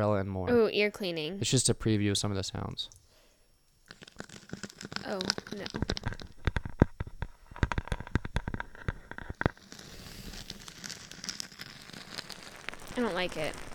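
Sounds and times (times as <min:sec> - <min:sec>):
speech: 0:00.0 - 0:03.0, 0:04.5 - 0:06.2, 0:13.0 - 0:13.7
fingernails scratching across a surface as an ASMR trigger: 0:03.8 - 0:13.7.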